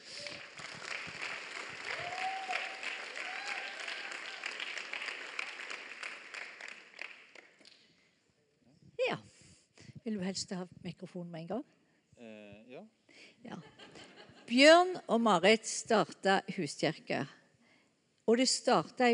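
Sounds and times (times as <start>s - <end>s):
audience applause: 0.0s - 7.6s
speech: 10.1s - 13.8s, 14.5s - 17.4s, 18.3s - 19.1s.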